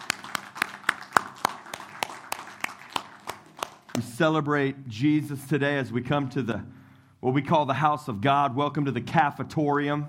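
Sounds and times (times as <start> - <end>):
people clapping: 0.0 - 4.2
speech: 4.0 - 10.0.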